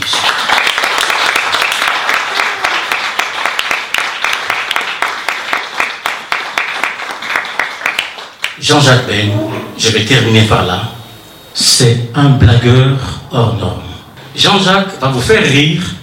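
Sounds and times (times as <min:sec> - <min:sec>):
loud audience applause: 0:00.0 - 0:09.8
speech: 0:08.6 - 0:10.9, 0:11.6 - 0:13.8, 0:14.4 - 0:16.0.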